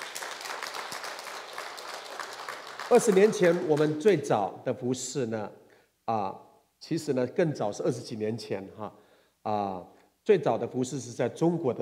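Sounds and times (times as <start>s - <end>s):
audience applause: 0.0s - 4.0s
speech: 2.9s - 11.8s.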